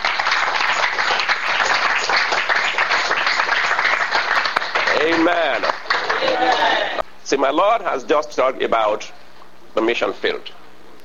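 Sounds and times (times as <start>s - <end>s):
audience clapping: 0.0s - 7.0s
speech: 5.1s - 5.7s, 7.3s - 9.2s, 9.8s - 10.6s.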